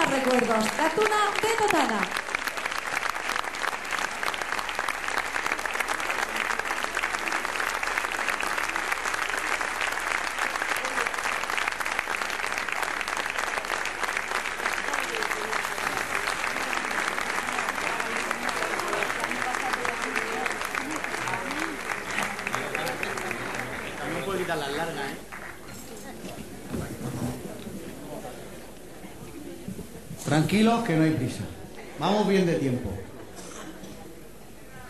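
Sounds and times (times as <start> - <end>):
applause: 0.0 - 26.3
speech: 0.3 - 2.2, 30.5 - 31.4, 32.0 - 33.0.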